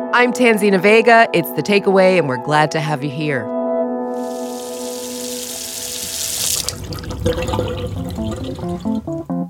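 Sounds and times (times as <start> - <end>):
speech: 0.1 - 3.5, 7.3 - 7.7
water gushing from a tap: 4.1 - 9.4.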